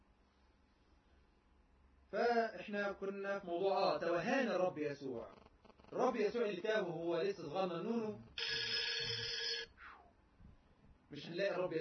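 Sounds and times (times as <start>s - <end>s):
speech: 2.1s - 8.3s, 11.1s - 11.8s
telephone ringing for an incoming call: 8.4s - 9.7s.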